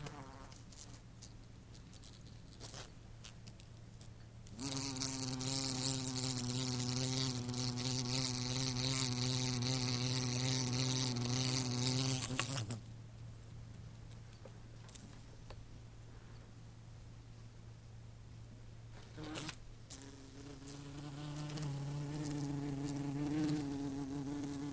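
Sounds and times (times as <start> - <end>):
bumblebee wing buzz: 4.6 - 12.8, 19.1 - 24.7.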